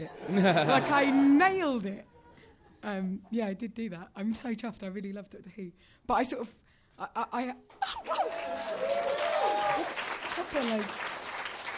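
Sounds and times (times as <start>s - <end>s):
speech: 0.0s - 2.1s, 2.8s - 11.1s
audience clapping: 7.7s - 11.7s
cheers and laughter: 8.0s - 9.9s.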